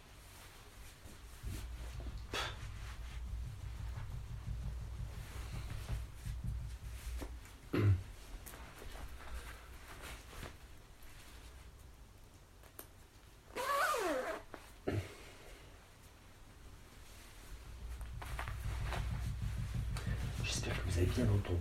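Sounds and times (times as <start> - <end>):
steady low rumbling background: 1.4 - 7.7, 17.5 - 21.5
zipper being opened or closed: 13.5 - 14.6
speech: 21.0 - 21.5.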